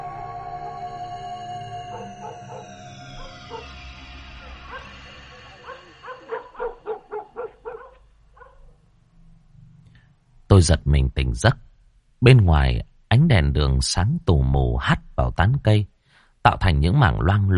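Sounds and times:
dog barking loudly next door: 0:01.9 - 0:03.7, 0:04.4 - 0:08.7
speech: 0:10.5 - 0:11.6, 0:12.2 - 0:17.5.

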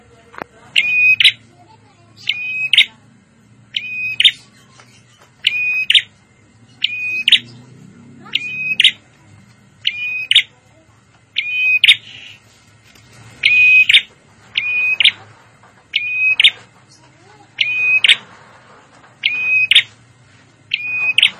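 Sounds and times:
prinia calls: 0:00.7 - 0:01.5, 0:02.1 - 0:03.0, 0:03.7 - 0:09.1, 0:09.8 - 0:10.6, 0:11.3 - 0:12.4, 0:13.4 - 0:15.3, 0:15.9 - 0:18.3, 0:19.2 - 0:19.9, 0:20.7 - 0:21.3.

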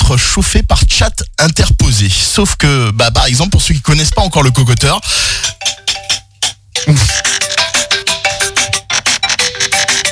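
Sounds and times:
speech: 0:00.1 - 0:06.2, 0:06.8 - 0:07.4
mobile phone ringing: 0:04.1 - 0:10.0.

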